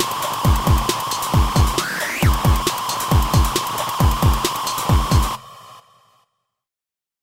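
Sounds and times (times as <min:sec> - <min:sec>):
Access Virus synthesizer noise effect: 0:00.0 - 0:05.6.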